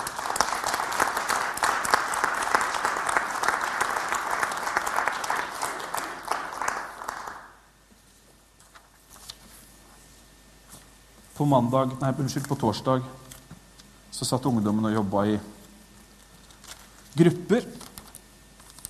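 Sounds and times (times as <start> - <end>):
applause: 0.0 - 7.7
speech: 11.4 - 13.2, 14.2 - 15.5, 17.2 - 17.8.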